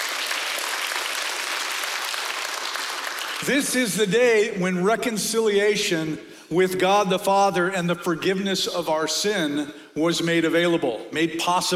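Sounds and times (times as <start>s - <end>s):
audience applause: 0.0s - 3.4s
speech: 3.4s - 11.7s.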